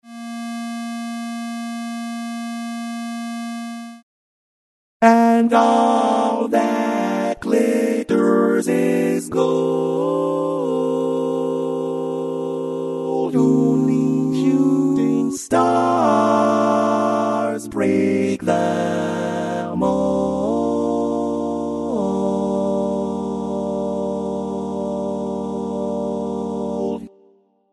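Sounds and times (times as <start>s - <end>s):
baritone barbershop tags: 5.0s - 27.1s.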